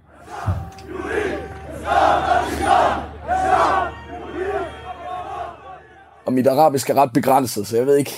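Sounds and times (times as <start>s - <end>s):
large crowd of angry protesters shouting and chanting: 0.0s - 6.4s
speech: 6.3s - 8.1s.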